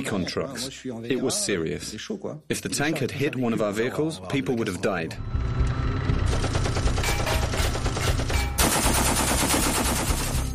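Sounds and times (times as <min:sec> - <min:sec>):
speech: 0:00.0 - 0:05.8
machine gun firing: 0:06.3 - 0:10.5.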